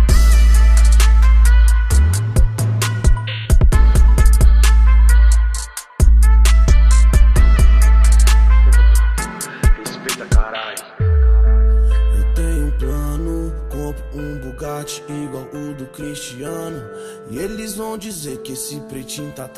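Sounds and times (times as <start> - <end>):
favela-made hip hop bass: 0.0 - 15.6.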